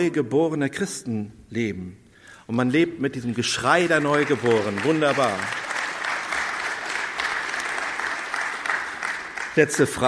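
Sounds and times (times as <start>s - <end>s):
speech: 0.0s - 5.7s, 9.6s - 10.0s
crowd applauding: 3.4s - 10.0s.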